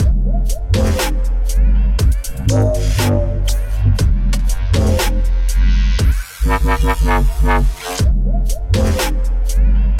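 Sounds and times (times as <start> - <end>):
dub music: 0.0 - 9.9.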